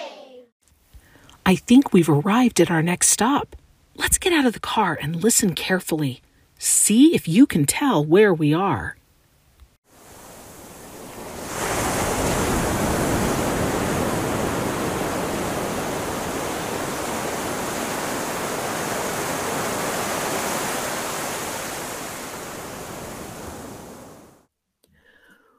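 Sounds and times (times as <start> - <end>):
speech: 1.5 - 9.0
ocean waves at the beach: 9.9 - 24.5.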